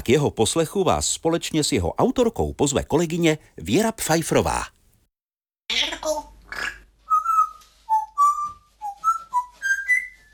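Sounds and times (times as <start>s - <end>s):
speech: 0.0s - 4.8s, 5.7s - 6.7s
parrot whistling a tuneful phrase: 7.1s - 10.3s.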